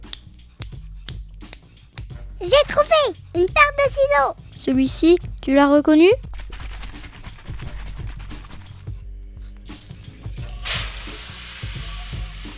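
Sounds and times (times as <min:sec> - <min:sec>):
speech: 0:02.4 - 0:06.3
shaken soda bottle being opened, fizzing: 0:09.7 - 0:12.5.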